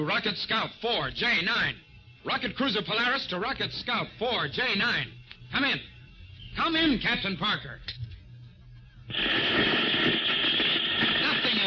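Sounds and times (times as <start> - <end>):
speech: 0.0 - 5.9, 6.6 - 8.0, 9.1 - 10.0
radio static, electronic interference: 9.1 - 11.6.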